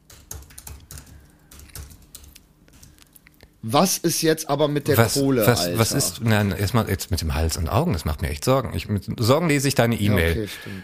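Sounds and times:
typing an email on a computer keyboard: 0.0 - 3.1
speech: 3.6 - 10.8.

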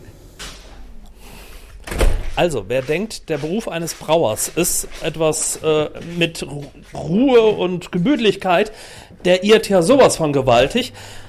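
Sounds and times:
refrigerator door being opened: 1.8 - 2.6
speech: 2.4 - 11.2.

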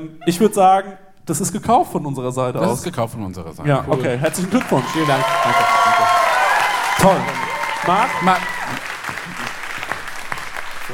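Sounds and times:
speech: 0.0 - 6.0, 7.0 - 8.6
crowd applause: 3.9 - 10.9.

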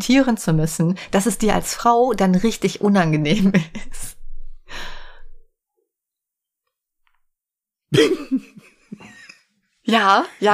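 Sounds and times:
speech: 0.0 - 4.9, 7.9 - 8.7, 9.9 - 10.5
soft breathy rush of air: 4.4 - 5.4
laughter: 8.0 - 9.4.

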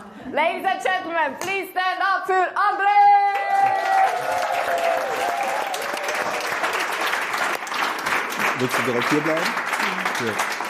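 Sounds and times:
speech: 0.3 - 4.9, 8.6 - 10.6
audience applause: 3.3 - 10.6.

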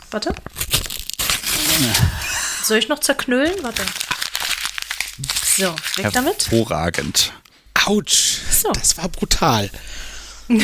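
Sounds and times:
speech: 0.1 - 0.8, 1.8 - 4.0, 5.2 - 10.6
page being torn out of a book: 0.4 - 2.2, 3.6 - 7.2.

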